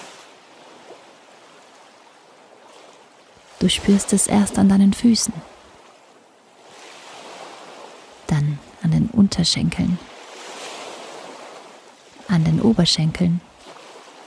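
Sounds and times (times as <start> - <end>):
water waves lapping: 0.0 - 14.2
speech: 3.6 - 5.5, 9.3 - 10.1, 12.3 - 13.5.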